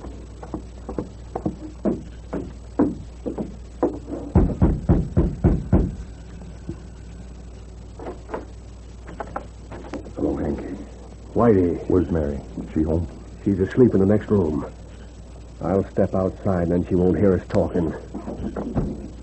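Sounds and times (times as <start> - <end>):
knocking on a wooden door: 0.4 - 6.0
speech: 11.4 - 14.8, 15.6 - 19.1.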